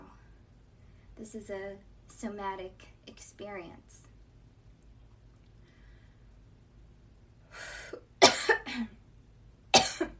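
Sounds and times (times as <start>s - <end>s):
speech: 1.2s - 4.1s
coughing: 7.9s - 9.0s, 9.7s - 10.1s.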